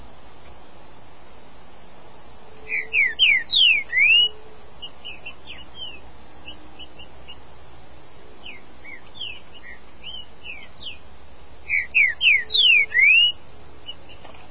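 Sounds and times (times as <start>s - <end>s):
green-winged saltator whistling song: 2.6s - 7.4s, 8.4s - 11.0s, 11.6s - 14.3s.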